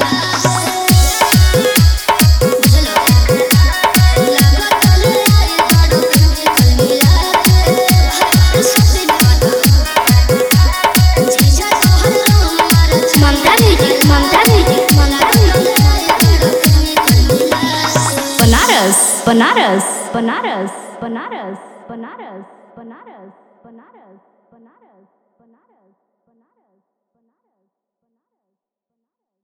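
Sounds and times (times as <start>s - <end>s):
Holi DJ remix songs: 0.0s - 20.6s.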